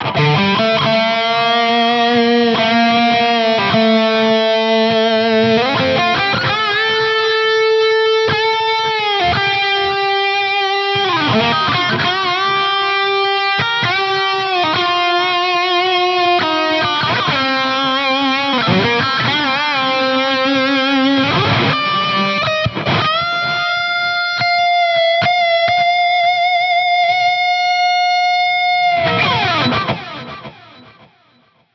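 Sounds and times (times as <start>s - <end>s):
electric guitar lead through a Fender Tone Master Pro: 0.0s - 31.7s.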